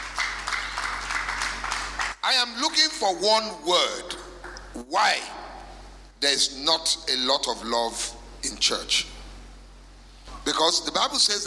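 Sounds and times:
audience clapping: 0.0 - 2.4
speech: 2.3 - 4.2, 4.8 - 5.4, 6.2 - 9.1, 10.4 - 11.4.

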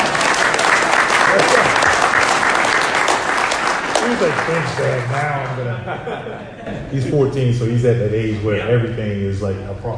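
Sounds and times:
audience applause: 0.0 - 5.7
laughter: 1.2 - 2.0, 4.0 - 7.2
speech: 4.2 - 9.9.

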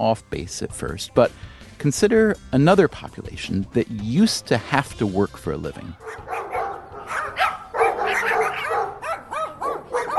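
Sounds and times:
speech: 0.0 - 6.4
dog barking: 6.0 - 10.1.

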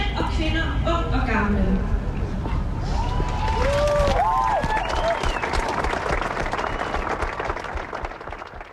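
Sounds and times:
speech: 0.4 - 2.0
protest crowd cheering and applauding in the street: 2.8 - 8.7
high whistles: 4.8 - 5.6, 6.5 - 7.2.

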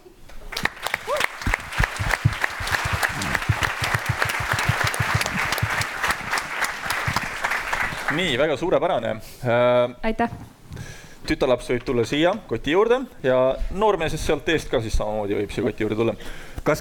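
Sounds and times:
audience applause: 0.5 - 8.4
speech: 8.2 - 10.5, 11.3 - 16.7.

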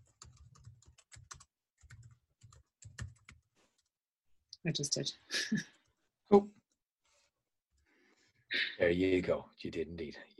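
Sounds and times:
typing on a computer keyboard: 0.0 - 3.4
speech: 4.6 - 6.6, 8.8 - 10.3.

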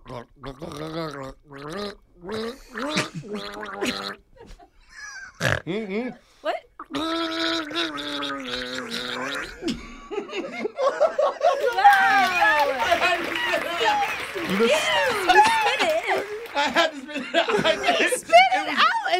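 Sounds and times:
person gargling water to a Christmas song: 0.0 - 4.2, 6.8 - 9.7
speech: 0.1 - 0.7
laughter: 9.6 - 19.1.

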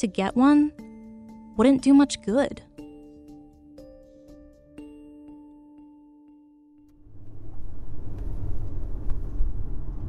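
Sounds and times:
speech: 0.0 - 0.8, 1.6 - 2.7
soft chiming tones: 0.7 - 6.9
car driving through Los Gatos in the Bay Area: 6.9 - 10.0.

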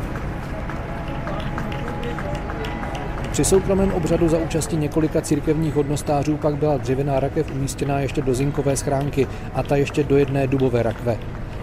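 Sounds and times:
crowd applauding the remains of Benedict XVI: 0.0 - 11.6
speech: 3.4 - 11.6.

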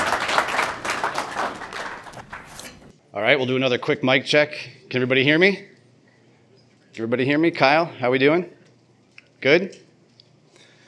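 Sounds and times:
audience applause: 0.0 - 2.9
speech: 3.2 - 5.7, 7.0 - 8.6, 9.4 - 9.8.

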